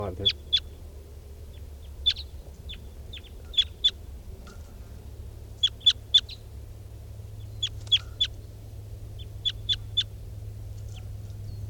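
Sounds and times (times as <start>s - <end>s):
low steady rumble: 0.0s - 11.6s
wild birds calling in sharp high chirps: 0.0s - 11.6s.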